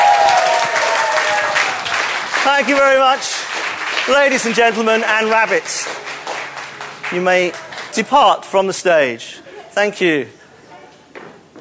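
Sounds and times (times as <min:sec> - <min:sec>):
round of applause: 0:00.0 - 0:08.1
speech: 0:02.5 - 0:03.4, 0:04.0 - 0:06.1, 0:07.1 - 0:10.4.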